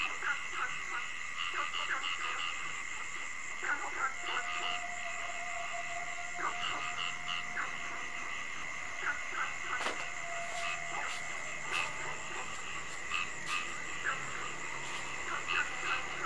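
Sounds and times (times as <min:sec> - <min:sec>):
many frogs croaking: 0:00.0 - 0:16.2.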